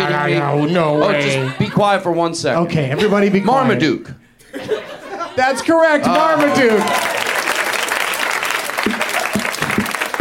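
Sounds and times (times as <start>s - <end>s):
laughter: 0.0s - 7.1s
speech: 0.1s - 7.1s
audience applause: 6.0s - 10.2s.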